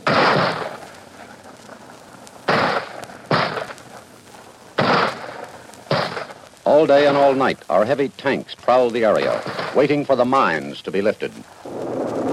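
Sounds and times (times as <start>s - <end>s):
mortar shells fired and exploding in combat against communist positions: 0.0s - 7.6s, 9.0s - 10.6s
speech: 6.7s - 11.5s.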